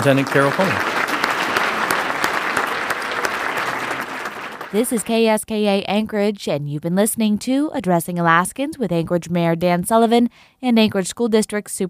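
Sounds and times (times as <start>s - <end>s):
speech: 0.0s - 0.9s, 4.7s - 11.8s
audience applause: 0.0s - 5.2s.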